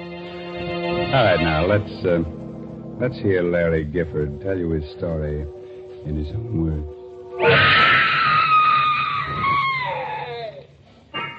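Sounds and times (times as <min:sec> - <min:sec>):
speech: 0:01.1 - 0:02.4, 0:03.0 - 0:07.8
woman screaming: 0:07.4 - 0:10.4.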